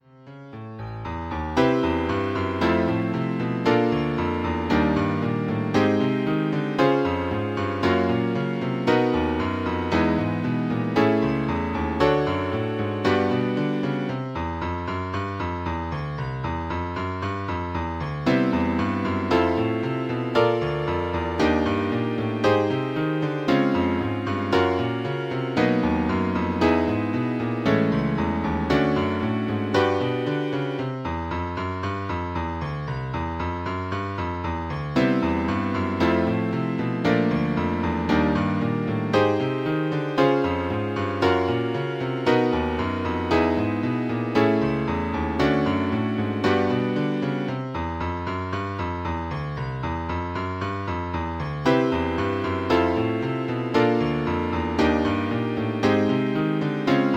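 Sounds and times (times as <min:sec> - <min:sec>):
major 7th jazz piano chord: 0:00.5 - 0:57.1.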